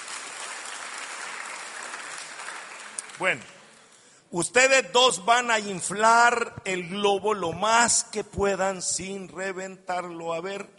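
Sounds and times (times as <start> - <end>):
crowd applauding: 0.0 - 4.0
speech: 3.2 - 3.6, 4.3 - 10.7.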